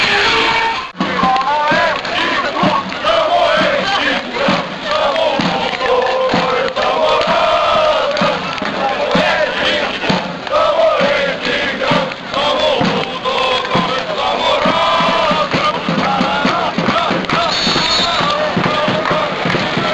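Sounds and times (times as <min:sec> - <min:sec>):
pounding drum beats: 0:00.0 - 0:19.9
stadium crowd chanting and singing: 0:00.0 - 0:19.9.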